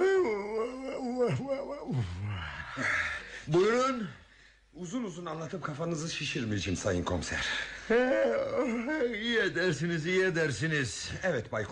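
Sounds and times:
long yawn: 0.0 - 3.6
speech: 1.3 - 4.1, 4.8 - 11.6.

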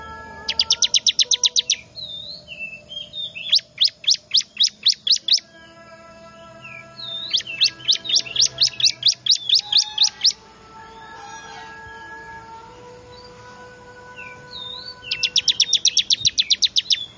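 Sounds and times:
bar-winged prinia lure call chirps and trills: 0.0 - 5.7, 6.5 - 10.4, 14.2 - 17.1.

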